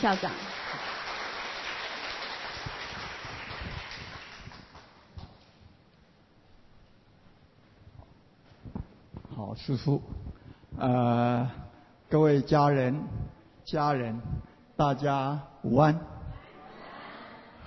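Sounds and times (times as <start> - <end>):
speech: 0.0 - 0.6, 9.6 - 16.1
warm applause welcoming a speaker: 0.0 - 5.0.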